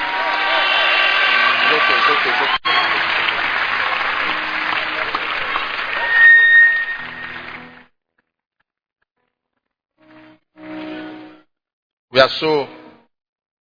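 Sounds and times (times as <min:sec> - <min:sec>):
audience round of applause: 0:00.0 - 0:07.9.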